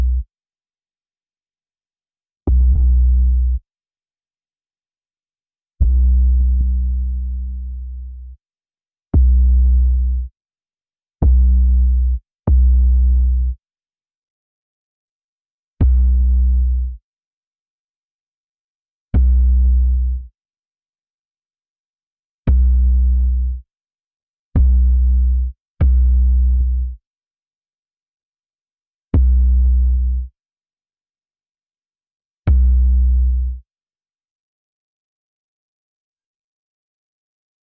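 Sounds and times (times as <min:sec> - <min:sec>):
bass: 0:00.0 - 0:00.3, 0:02.4 - 0:03.7, 0:05.8 - 0:08.4, 0:09.1 - 0:10.4, 0:11.2 - 0:13.6, 0:15.8 - 0:17.0, 0:19.1 - 0:20.4, 0:22.4 - 0:23.7, 0:24.5 - 0:27.1, 0:29.1 - 0:30.4, 0:32.4 - 0:33.7.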